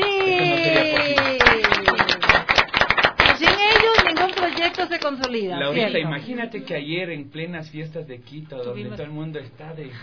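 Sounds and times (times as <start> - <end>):
children clapping for their parents and families: 0.0 - 5.4
speech: 5.1 - 10.0.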